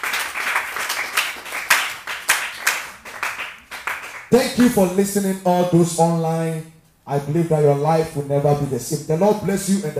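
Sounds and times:
audience clapping hands: 0.0s - 4.8s
speech: 4.3s - 9.9s.

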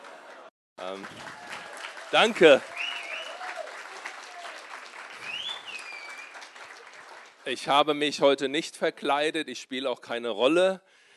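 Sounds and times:
audience applause: 0.0s - 7.7s
speech: 0.8s - 1.4s, 2.1s - 2.9s, 7.5s - 10.9s.

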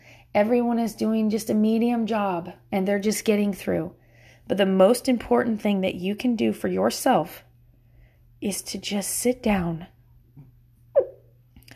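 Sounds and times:
low steady hum: 0.0s - 11.7s
speech: 0.4s - 7.5s, 8.4s - 9.9s
hiccup or small burp: 11.0s - 11.3s.

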